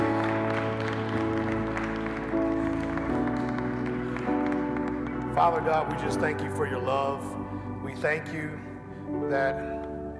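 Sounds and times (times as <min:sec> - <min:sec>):
audience hand clapping: 0:00.0 - 0:06.6
speech: 0:05.4 - 0:09.8.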